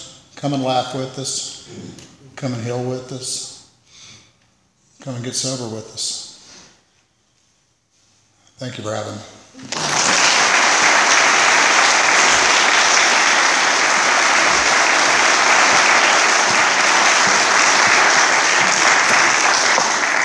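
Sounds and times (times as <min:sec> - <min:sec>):
speech: 0:00.4 - 0:03.6, 0:05.0 - 0:06.3, 0:08.6 - 0:10.1
audience applause: 0:09.6 - 0:20.2.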